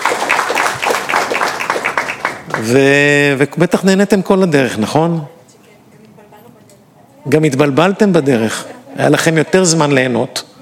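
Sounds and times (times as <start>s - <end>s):
audience applause: 0.0s - 3.0s
speech: 2.6s - 5.4s, 7.3s - 10.5s.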